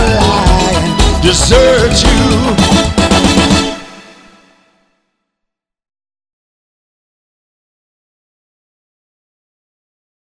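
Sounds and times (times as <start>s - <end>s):
person singing: 0.0s - 4.2s.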